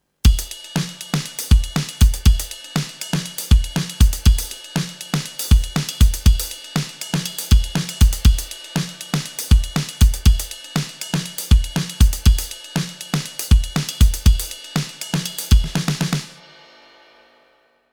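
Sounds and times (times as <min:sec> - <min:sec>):
dry drums through a console: 0:00.3 - 0:16.5.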